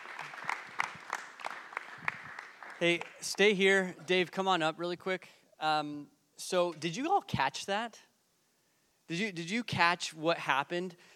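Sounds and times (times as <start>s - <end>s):
crowd applauding: 0.0s - 3.4s
speech: 2.8s - 8.1s, 9.1s - 11.1s.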